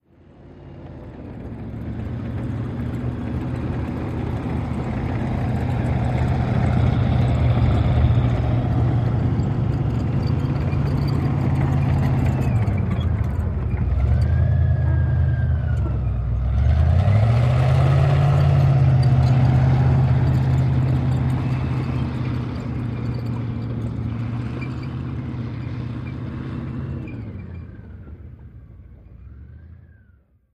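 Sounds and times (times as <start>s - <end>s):
armored personnel carrier stopping, idling and driving away: 0.0s - 30.5s.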